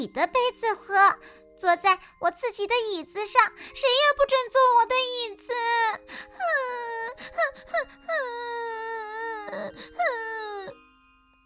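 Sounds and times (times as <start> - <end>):
speech: 0.0 - 10.8
bear character bursting into tears, wailing and sobbing: 5.6 - 10.8.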